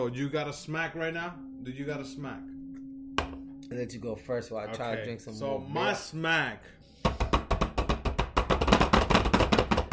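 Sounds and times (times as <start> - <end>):
speech: 0.0 - 2.5, 3.7 - 7.2
banging on the table: 7.0 - 9.9.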